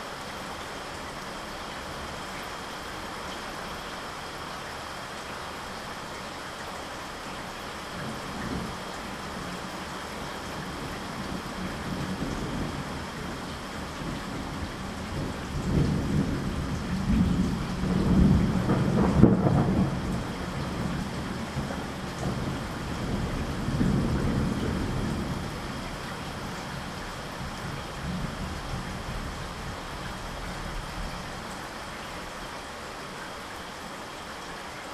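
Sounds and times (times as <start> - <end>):
gentle rain: 0.0 - 34.9.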